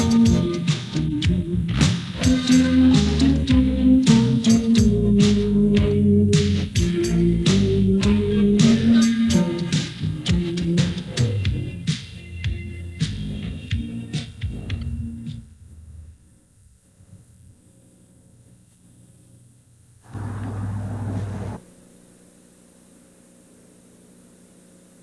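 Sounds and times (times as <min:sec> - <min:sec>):
rap instrumental beat: 0:00.0 - 0:15.3.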